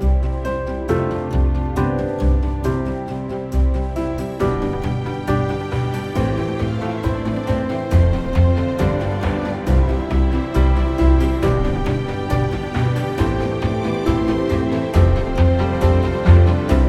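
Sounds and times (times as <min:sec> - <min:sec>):
commercial music: 0:00.0 - 0:16.8.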